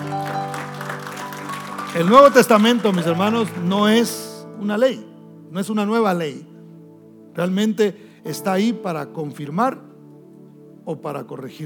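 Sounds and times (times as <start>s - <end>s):
audience applause: 0.0s - 4.0s
speech: 2.0s - 6.5s, 7.4s - 9.9s, 10.9s - 11.6s.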